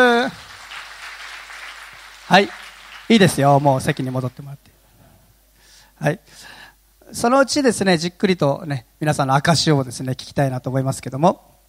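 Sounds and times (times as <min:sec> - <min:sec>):
audience applause: 0:00.0 - 0:04.4
speech: 0:02.3 - 0:04.8, 0:06.0 - 0:11.5.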